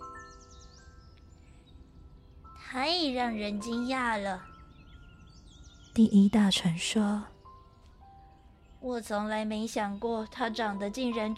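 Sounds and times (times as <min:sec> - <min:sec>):
nightingale singing: 0:00.0 - 0:11.3
speech: 0:02.7 - 0:04.5, 0:06.0 - 0:07.3, 0:08.8 - 0:11.3.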